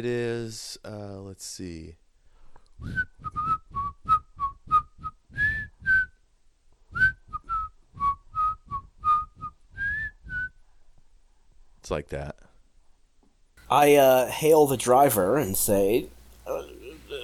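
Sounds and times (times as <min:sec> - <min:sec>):
speech: 0:00.0 - 0:02.0, 0:02.8 - 0:03.7, 0:11.9 - 0:12.4, 0:13.7 - 0:16.7
person whistling an unrecognized tune: 0:02.8 - 0:06.2, 0:06.9 - 0:10.6.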